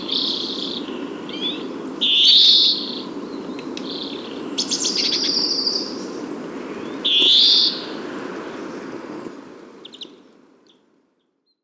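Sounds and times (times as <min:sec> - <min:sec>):
European greenfinch Chloris chloris twittering: 0:00.0 - 0:06.2.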